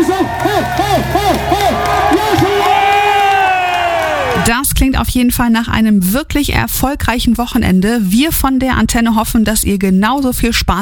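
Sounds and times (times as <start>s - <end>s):
whoops and shouts: 0.0s - 4.5s
crowd cheering: 0.0s - 4.6s
speech: 5.1s - 10.8s.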